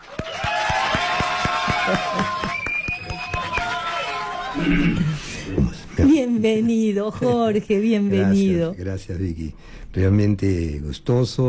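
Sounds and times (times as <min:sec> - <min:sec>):
rhythmic audience clapping: 0:00.0 - 0:04.4
cheering and whoops: 0:00.0 - 0:04.7
speech: 0:04.7 - 0:05.2, 0:06.4 - 0:11.4.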